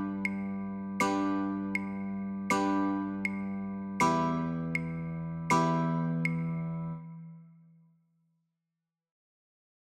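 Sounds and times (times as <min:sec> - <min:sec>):
guitar chords: 0:00.0 - 0:07.3.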